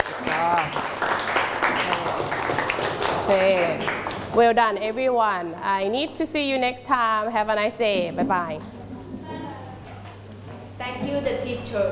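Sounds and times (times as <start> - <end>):
applause, clapping hands: 0.0 - 4.4
speech: 3.3 - 8.8, 11.1 - 11.9.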